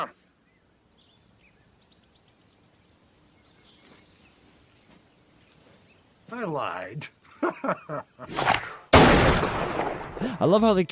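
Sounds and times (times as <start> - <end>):
speech: 0.0 - 0.2, 6.3 - 10.9
laughter: 7.2 - 8.3
gunshot fired point blank: 8.3 - 10.2.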